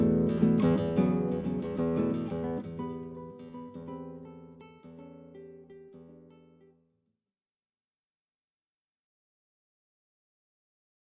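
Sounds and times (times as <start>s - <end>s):
acoustic guitar playing cocktail and dinner music: 0.0s - 6.8s.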